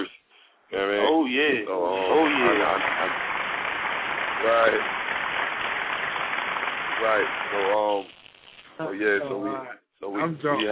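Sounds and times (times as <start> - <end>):
speech: 0.7 - 3.4, 4.4 - 5.0, 7.0 - 8.2, 8.8 - 10.7
hand clap sound effect: 2.1 - 8.0.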